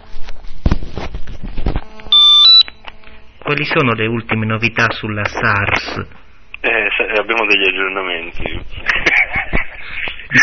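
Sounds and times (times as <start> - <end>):
telephone ringing: 2.1 - 2.6
speech: 3.5 - 9.1
laughter: 8.4 - 10.4.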